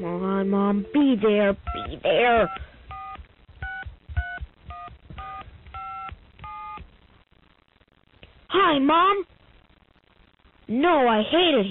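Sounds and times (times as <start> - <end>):
speech: 0.0 - 2.7, 8.5 - 9.3, 10.7 - 11.6
touch-tone phone being dialed: 1.7 - 6.8.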